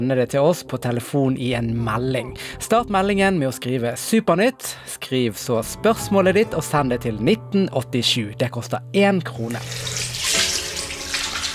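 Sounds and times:
speech: 0.0 - 10.0
running water from a tap: 9.4 - 11.5
hands washing with soap: 9.5 - 11.5.

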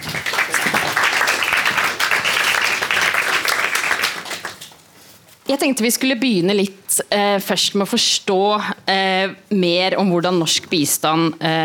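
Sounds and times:
crowd applause: 0.0 - 4.7
speech: 5.5 - 11.6.

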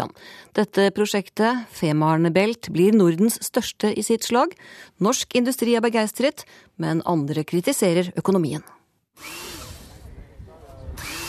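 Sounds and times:
speech: 0.0 - 9.5
drilling at a construction site on the beach at Rødby harbour: 9.2 - 10.0, 10.9 - 11.2.

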